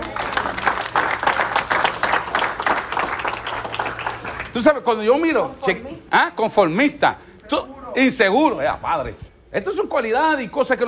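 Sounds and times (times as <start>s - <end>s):
audience applause: 0.0s - 4.7s
speech: 4.6s - 10.8s.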